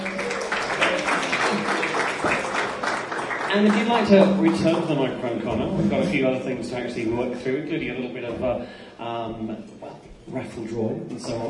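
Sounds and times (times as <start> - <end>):
audience clapping: 0.0 - 5.3
speech: 3.5 - 9.7, 10.3 - 11.4.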